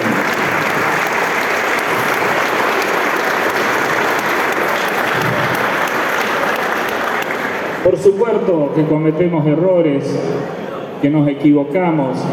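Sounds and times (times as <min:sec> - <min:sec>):
audience applause: 0:00.0 - 0:08.0
speech: 0:08.0 - 0:12.3.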